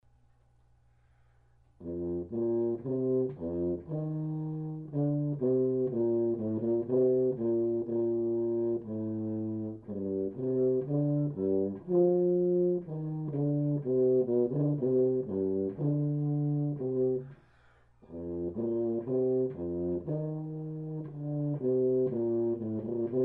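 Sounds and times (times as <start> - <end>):
prologue tuba: 1.7 - 23.2.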